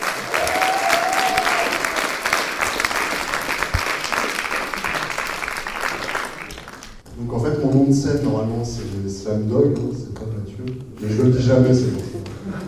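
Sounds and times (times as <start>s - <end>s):
poetry slam audience applauding and cheering: 0.0s - 7.0s
speech: 8.1s - 10.0s, 10.6s - 11.9s.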